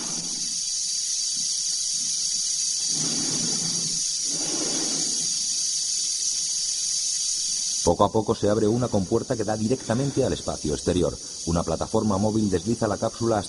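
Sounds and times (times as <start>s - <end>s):
astronaut breathing amplified through helmet transmitters: 2.9s - 5.4s
speech: 7.9s - 13.4s.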